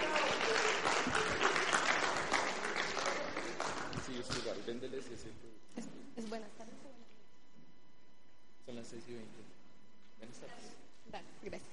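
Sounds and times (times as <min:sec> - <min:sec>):
applause: 0:00.0 - 0:04.6
speech: 0:04.8 - 0:06.4, 0:08.9 - 0:09.6, 0:10.2 - 0:11.7.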